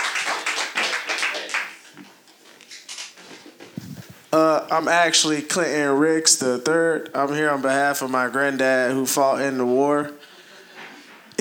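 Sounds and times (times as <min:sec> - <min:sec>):
audience applause: 0:00.0 - 0:01.8
speech: 0:04.3 - 0:10.2.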